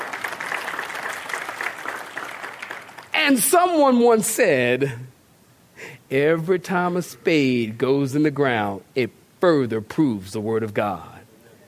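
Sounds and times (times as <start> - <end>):
audience clapping hands: 0.0 - 3.5
speech: 3.3 - 5.1, 6.1 - 11.1.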